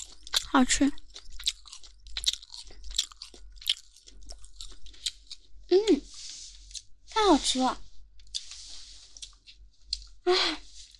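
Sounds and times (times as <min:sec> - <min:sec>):
crunching and chewing crispy, chewy skin: 0:00.0 - 0:05.6, 0:08.2 - 0:10.2
speech: 0:00.5 - 0:01.0, 0:07.4 - 0:07.8, 0:10.3 - 0:10.6.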